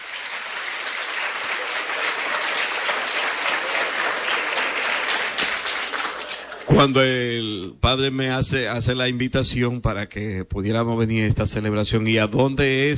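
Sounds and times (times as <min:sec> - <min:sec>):
applause: 0:00.0 - 0:07.6
speech: 0:06.8 - 0:12.9.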